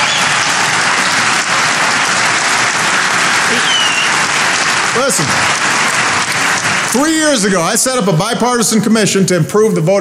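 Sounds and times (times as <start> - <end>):
audience applause: 0.0 - 8.4
speech: 5.0 - 5.6, 6.9 - 10.0.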